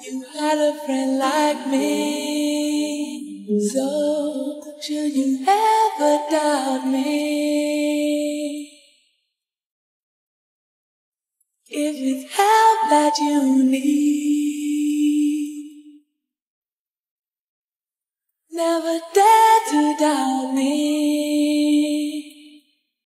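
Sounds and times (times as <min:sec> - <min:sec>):
a cappella singing: 0:00.0 - 0:09.0, 0:11.7 - 0:16.0, 0:18.5 - 0:23.0.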